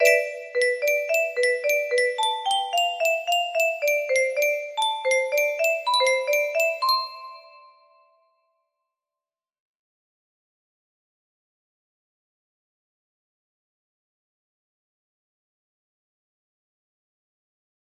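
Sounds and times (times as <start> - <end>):
music box melody: 0.0 - 8.1.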